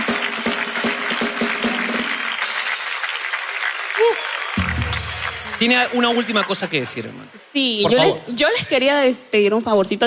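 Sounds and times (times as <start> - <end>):
audience applause: 0.0 - 7.4
speech: 5.6 - 10.0.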